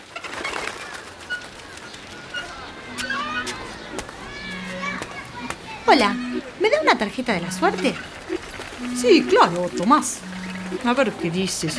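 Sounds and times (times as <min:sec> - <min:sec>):
parrots squawking: 0:02.9 - 0:11.7
speech: 0:05.9 - 0:08.2, 0:08.8 - 0:11.7.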